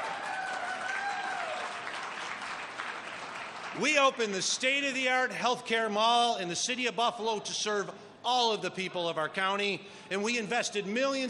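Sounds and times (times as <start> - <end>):
audience applauding: 0.0 - 4.2
speech: 3.8 - 11.2.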